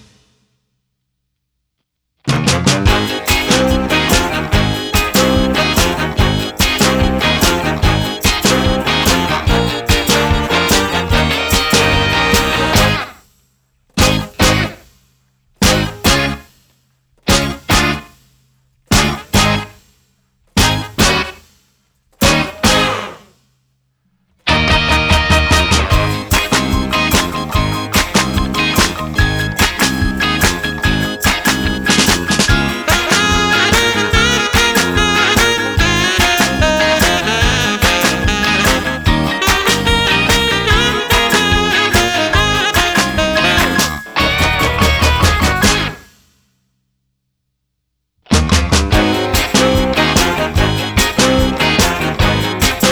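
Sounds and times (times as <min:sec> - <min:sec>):
musical accompaniment: 0:02.4 - 0:13.2, 0:14.0 - 0:14.8, 0:15.6 - 0:16.5, 0:17.3 - 0:18.1, 0:19.0 - 0:19.8, 0:20.6 - 0:21.4, 0:22.2 - 0:23.2, 0:24.5 - 0:46.3, 0:48.9 - 0:52.9.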